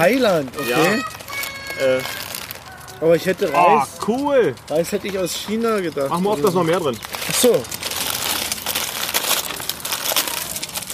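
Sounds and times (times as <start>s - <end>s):
speech: 0.0s - 1.2s, 1.8s - 2.2s, 3.0s - 7.9s
packaging crinkling: 0.0s - 3.5s, 6.4s - 10.9s.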